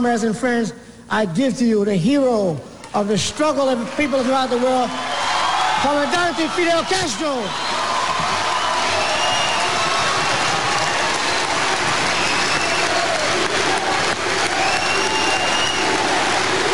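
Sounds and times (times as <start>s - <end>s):
speech: 0.0s - 5.1s, 5.8s - 7.8s
large crowd applauding: 3.4s - 16.7s.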